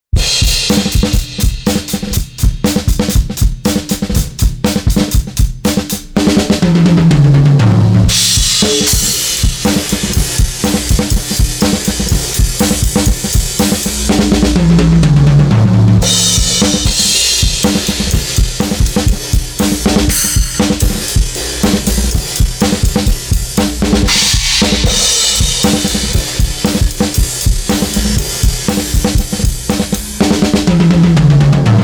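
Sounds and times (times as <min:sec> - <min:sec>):
drum: 0:00.1 - 0:31.8.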